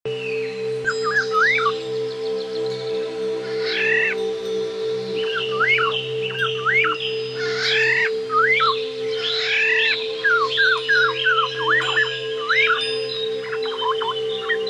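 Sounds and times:
black-naped oriole whistled song: 0.1s - 14.6s.

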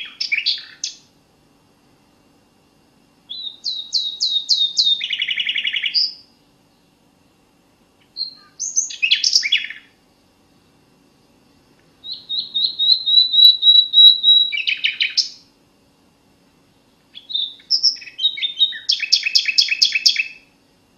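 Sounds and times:
common nightingale singing: 0.0s - 1.1s, 3.3s - 6.9s, 8.0s - 10.0s, 12.0s - 15.5s, 17.1s - 20.5s.

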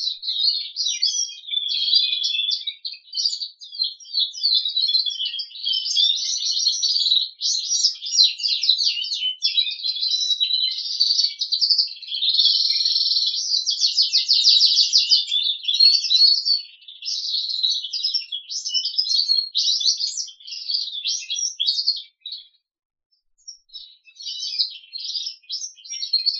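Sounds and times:
Crested canary song: 0.0s - 26.3s.

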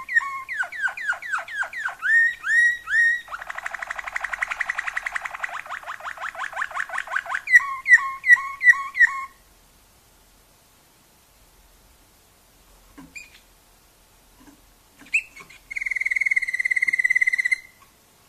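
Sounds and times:
Waterslager canary singing: 0.0s - 9.4s, 15.0s - 17.8s.

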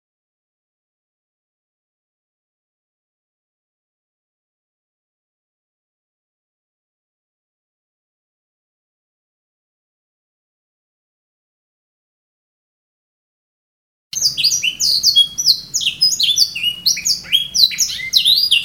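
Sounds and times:
canary singing: 14.2s - 18.6s.

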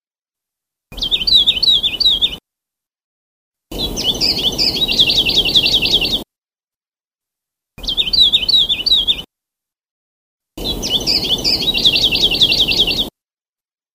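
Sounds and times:
Sulawesi leaf warbler singing: 1.0s - 2.4s, 3.7s - 6.2s, 7.8s - 9.2s, 10.6s - 13.1s.

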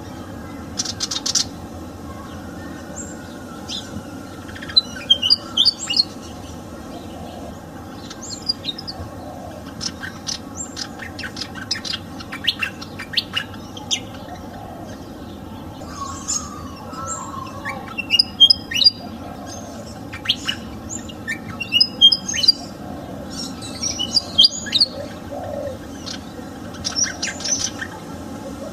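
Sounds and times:
garden fan: 0.0s - 28.7s.

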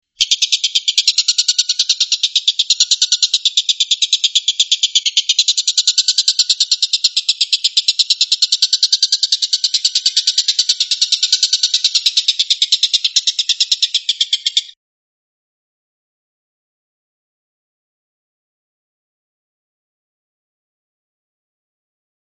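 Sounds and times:
stork-billed kingfisher rattle: 0.2s - 14.8s.

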